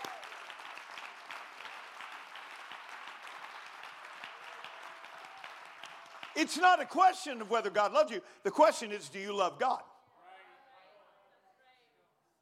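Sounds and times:
audience clapping hands in praise: 0.0 - 7.8
speech: 6.4 - 9.9.

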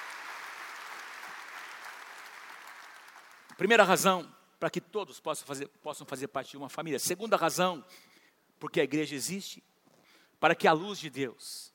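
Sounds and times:
audience applause: 0.0 - 3.6
speech: 3.6 - 9.7, 10.4 - 11.7.

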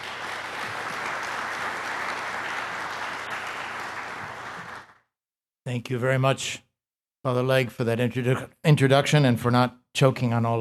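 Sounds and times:
audience applause welcoming Archbishop Timothy Broglio: 0.0 - 5.0
speech: 5.7 - 10.5.

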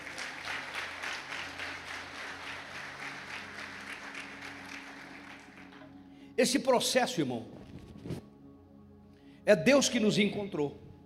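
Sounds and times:
audience applauding loudly: 0.0 - 6.0
speech: 6.4 - 7.6, 9.5 - 10.8.

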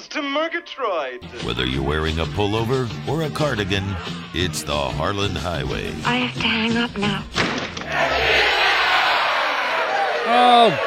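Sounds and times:
speech: 0.0 - 8.5, 10.3 - 10.8
crowd cheering: 7.8 - 10.8.

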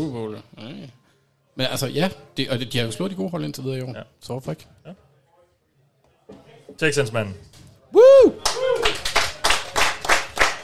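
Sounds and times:
speech: 0.0 - 1.0, 1.6 - 5.0, 6.3 - 8.5
audience clapping: 8.4 - 10.6.

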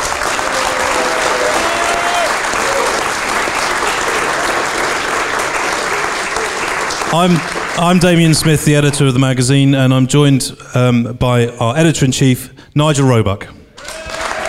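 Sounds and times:
audience applause welcoming racing driver John Surtees at the Bluebird in Chelsea: 0.0 - 8.6, 13.8 - 14.4
speech: 7.1 - 13.6.

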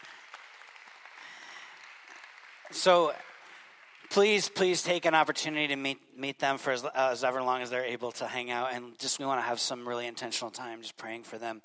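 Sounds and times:
audience applause: 0.0 - 4.8
speech: 2.7 - 3.3, 4.1 - 11.6.

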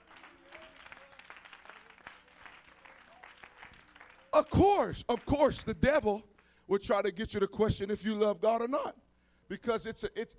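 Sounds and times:
crowd clapping hands: 0.0 - 5.7
speech: 4.4 - 10.3.

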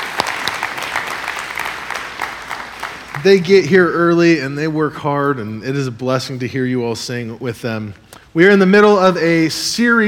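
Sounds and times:
audience applause: 0.0 - 3.3
speech: 3.2 - 10.0.

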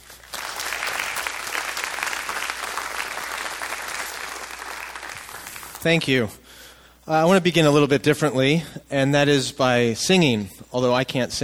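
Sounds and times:
audience clapping to welcome a speaker at a church service: 0.0 - 6.1
speech: 5.8 - 6.4, 7.1 - 11.4.

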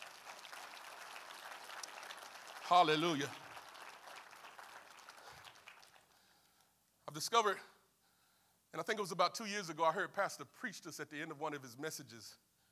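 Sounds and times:
audience hand clapping applause: 0.0 - 6.2
speech: 2.7 - 3.4, 7.1 - 7.7, 8.7 - 12.4.

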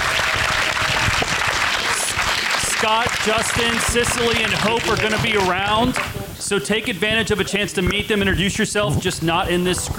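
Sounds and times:
audience applause: 0.0 - 6.1
speech: 2.8 - 9.9.

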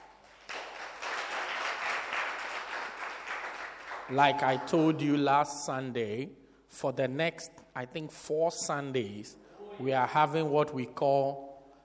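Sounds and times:
church audience clapping: 0.0 - 4.7
speech: 4.1 - 11.5.

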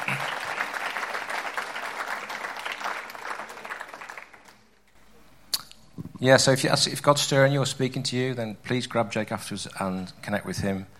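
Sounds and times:
audience round of applause: 0.0 - 4.8
speech: 6.2 - 10.9.

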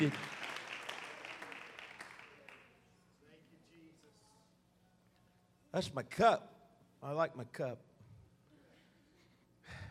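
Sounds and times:
speech: 0.0 - 0.4, 5.7 - 7.9
people clapping hands: 0.0 - 3.0.

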